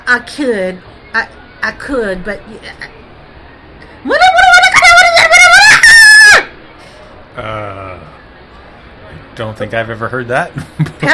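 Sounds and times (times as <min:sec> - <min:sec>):
speech: 0:00.1 - 0:03.0, 0:04.0 - 0:04.5, 0:07.4 - 0:08.2, 0:09.4 - 0:11.1
ear-piercing scream in the background: 0:04.1 - 0:06.6.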